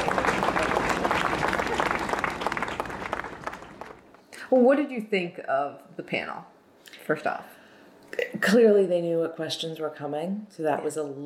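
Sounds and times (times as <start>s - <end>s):
crowd applause: 0.0s - 4.2s
speech: 4.5s - 11.2s.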